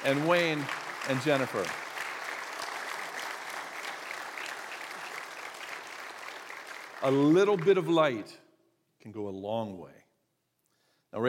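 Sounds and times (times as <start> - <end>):
speech: 0.0 - 1.8, 7.0 - 8.4, 9.0 - 10.0
audience applause: 0.0 - 8.1.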